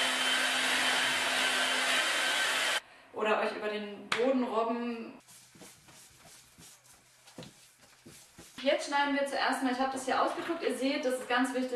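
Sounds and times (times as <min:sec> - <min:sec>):
hair dryer blowing: 0:00.0 - 0:02.8
speech: 0:03.2 - 0:05.4, 0:08.6 - 0:11.7.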